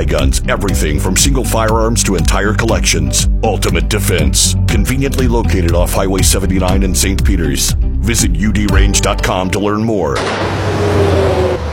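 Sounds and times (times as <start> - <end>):
speech: 0.0 - 11.4
car traffic on Highway 70: 10.2 - 11.7.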